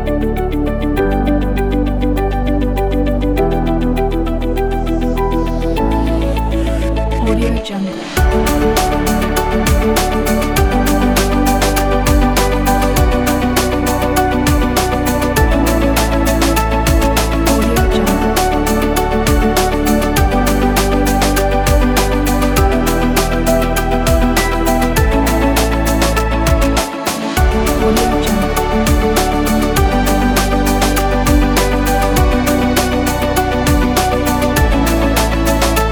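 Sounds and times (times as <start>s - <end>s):
inspiring ambient hip hop corporate music: 0.0s - 35.9s.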